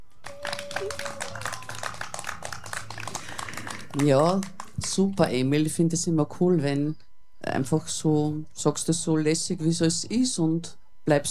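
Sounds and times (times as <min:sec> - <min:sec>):
small group clapping: 0:00.0 - 0:05.3
low murmuring: 0:00.0 - 0:08.5
faint steady tone: 0:00.0 - 0:11.2
speech: 0:00.8 - 0:01.5, 0:04.0 - 0:11.2.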